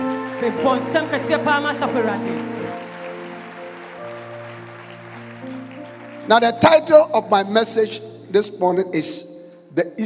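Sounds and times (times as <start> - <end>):
audience clapping: 0.0 - 7.6
speech: 0.4 - 2.8, 6.3 - 10.0.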